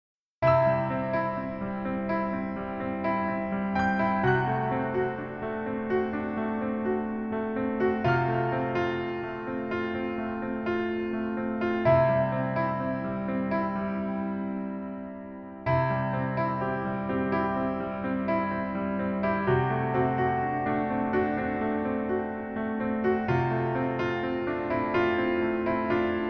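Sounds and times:
piano melody backing track: 0.4s - 26.2s.

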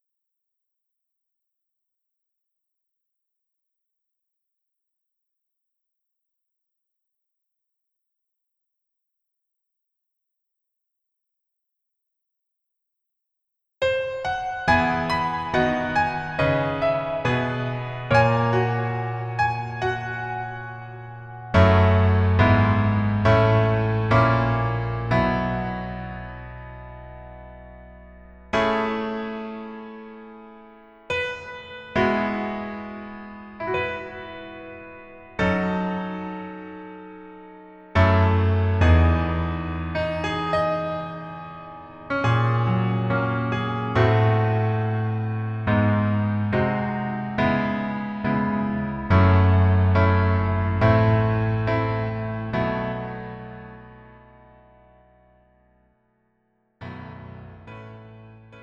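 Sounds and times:
piano music: 13.8s - 55.7s, 56.8s - 58.6s.

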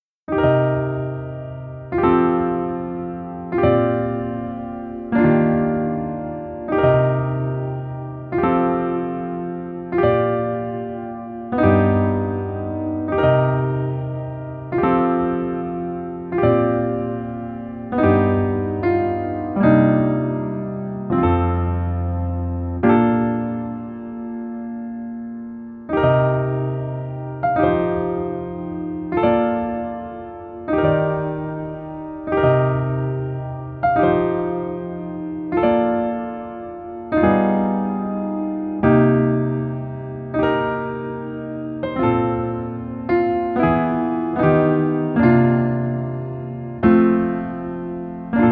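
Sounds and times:
piano music: 0.0s - 48.5s.

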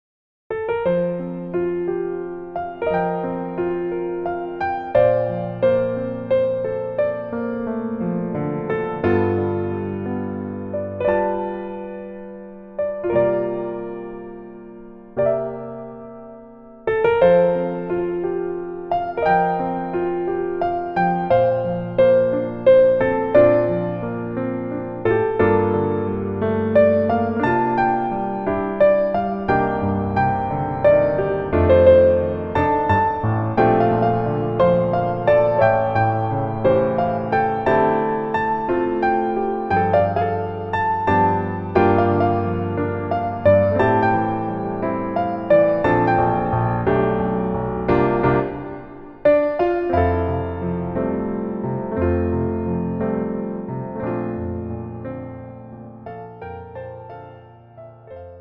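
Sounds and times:
piano melody backing track: 0.5s - 58.3s.

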